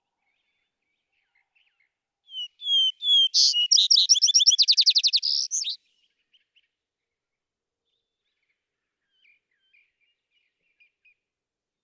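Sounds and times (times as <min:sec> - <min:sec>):
vesper sparrow song: 0:02.3 - 0:05.8.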